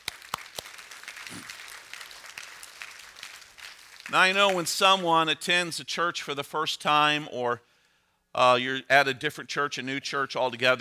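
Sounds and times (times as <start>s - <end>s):
church congregation applause as an ovation for guests: 0.0s - 5.4s
speech: 4.1s - 7.7s, 8.4s - 10.7s.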